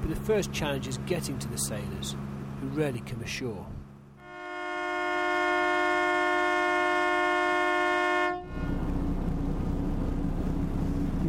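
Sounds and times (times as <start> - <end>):
rushing rumble of engine or wind: 0.0 - 11.2
speech: 0.3 - 3.8
horn blast: 4.2 - 8.9.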